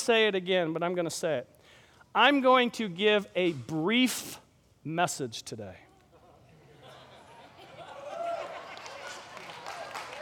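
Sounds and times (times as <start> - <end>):
speech: 0.0 - 5.8
laughter: 6.1 - 9.8
audience clapping: 8.2 - 10.2.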